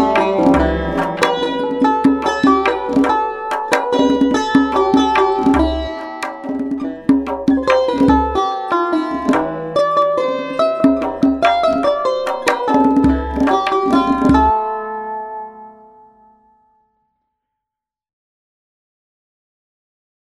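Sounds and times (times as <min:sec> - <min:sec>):
tar playing: 0:00.0 - 0:16.0.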